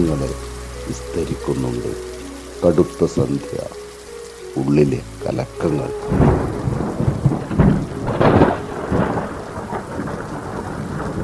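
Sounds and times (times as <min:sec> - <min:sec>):
speech: 0:00.0 - 0:03.8, 0:04.5 - 0:06.6
deep rumbles of thunder: 0:00.0 - 0:11.2
heavy rain: 0:00.0 - 0:11.2.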